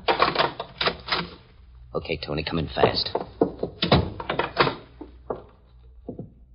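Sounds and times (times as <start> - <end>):
door being opened with clattering thuds and rattles: 0.0 - 1.4, 2.8 - 6.4
speech: 2.0 - 3.3.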